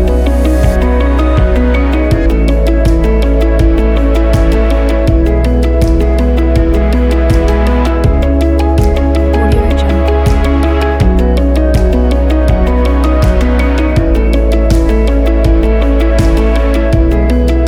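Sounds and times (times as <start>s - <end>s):
cinematic documentary music: 0.0s - 17.6s.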